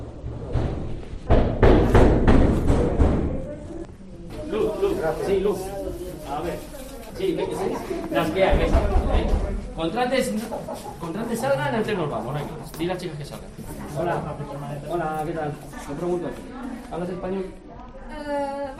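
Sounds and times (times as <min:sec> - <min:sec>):
police officer pounding on apartment door: 0:00.5 - 0:03.4, 0:08.4 - 0:09.6
speech: 0:05.0 - 0:17.6, 0:18.2 - 0:18.7.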